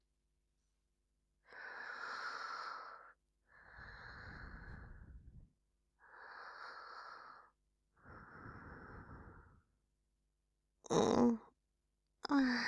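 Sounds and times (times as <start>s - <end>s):
sleeping breath: 1.5s - 5.4s, 6.0s - 9.7s.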